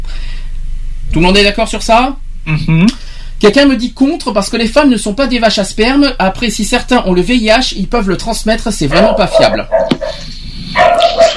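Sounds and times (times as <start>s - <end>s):
speech: 1.2s - 10.4s
dogs barking: 8.9s - 11.3s.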